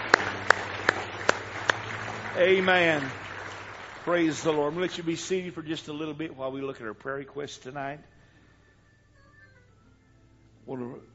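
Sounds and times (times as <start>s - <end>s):
sharp hand claps of praise at a church service: 0.0s - 5.2s
speech: 2.4s - 3.2s, 4.0s - 8.1s, 10.7s - 11.1s.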